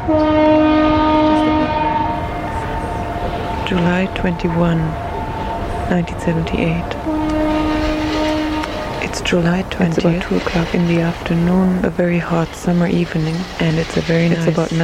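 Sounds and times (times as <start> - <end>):
speech: 0.0 - 0.9, 3.7 - 5.1, 5.9 - 7.2, 9.2 - 14.8
Brockton Point foghorn blowing: 0.0 - 11.4.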